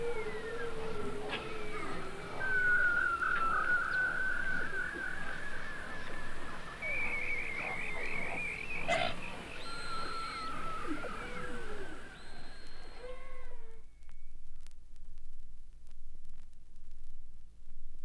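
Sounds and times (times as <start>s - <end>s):
beluga whales calling in the Arctic: 0.0s - 13.8s.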